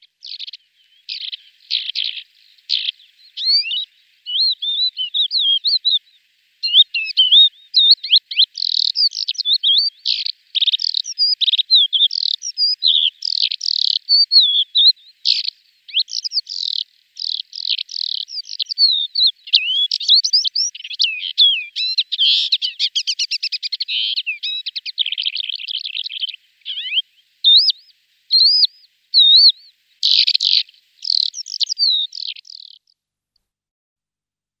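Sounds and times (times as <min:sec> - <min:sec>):
lesser short-toed lark song: 0:00.0 - 0:33.0.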